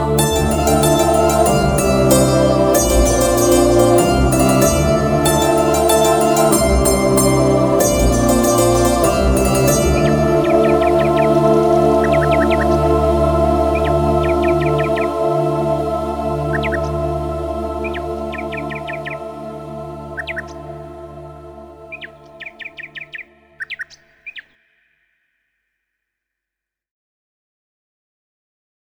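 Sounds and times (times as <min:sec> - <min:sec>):
instrumental music: 0:00.2 - 0:20.7.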